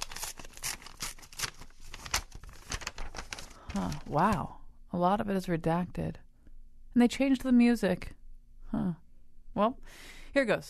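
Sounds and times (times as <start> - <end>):
sealed envelope being torn open: 0.0 - 4.2
speech: 3.8 - 6.2, 6.9 - 9.0, 9.6 - 10.6.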